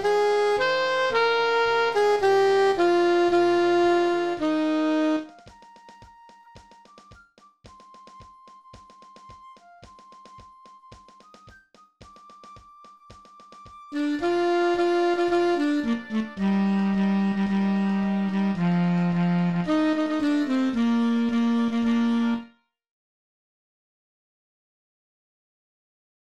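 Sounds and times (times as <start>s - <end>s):
alto saxophone: 0.0s - 5.5s, 13.9s - 22.6s.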